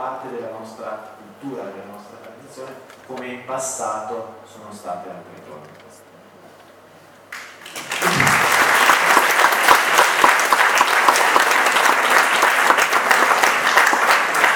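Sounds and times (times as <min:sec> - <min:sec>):
speech: 0:00.2 - 0:06.1
audience applause: 0:07.3 - 0:14.5.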